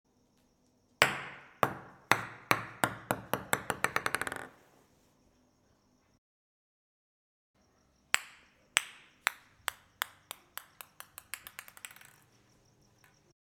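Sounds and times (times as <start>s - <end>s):
ping pong ball bouncing: 1.0s - 4.6s, 8.2s - 12.3s.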